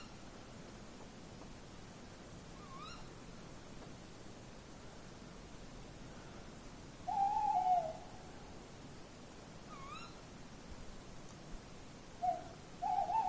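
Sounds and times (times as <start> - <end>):
Tawny owl hooting: 2.6 - 3.1, 7.1 - 8.4, 9.7 - 10.2, 12.2 - 13.2.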